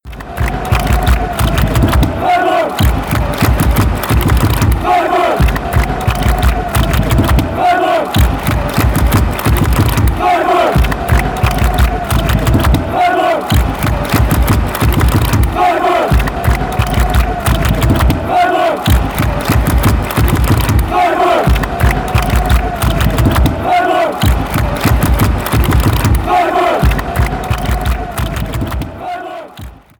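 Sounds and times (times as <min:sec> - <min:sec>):
goal anthem: 0:00.0 - 0:29.9
football fans chanting: 0:00.1 - 0:29.9.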